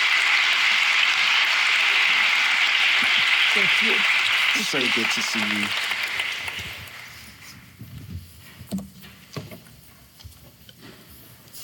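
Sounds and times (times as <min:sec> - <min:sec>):
audience applauding: 0:00.0 - 0:07.5
speech: 0:03.6 - 0:06.0.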